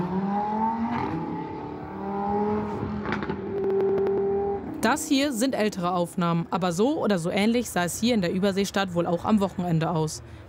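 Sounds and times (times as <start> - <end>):
car engines revving in loud street traffic: 0.0 - 5.4
speech: 4.9 - 10.4.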